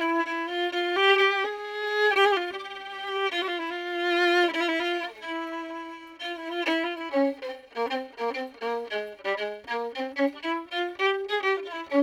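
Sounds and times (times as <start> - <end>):
violin recorded with a UM17 tube microphone: 0.0 - 12.0.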